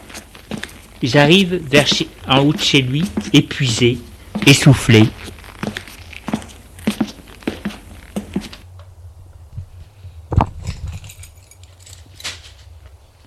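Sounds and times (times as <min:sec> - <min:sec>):
speech: 0:01.0 - 0:05.3
keys jangling while searching bag: 0:10.6 - 0:12.6.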